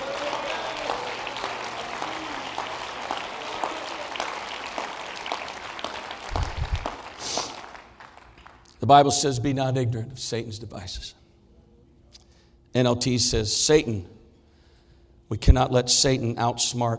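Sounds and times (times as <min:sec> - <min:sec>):
audience clapping hands: 0:00.0 - 0:08.8
speech: 0:08.8 - 0:11.2, 0:12.8 - 0:14.2, 0:15.3 - 0:16.9.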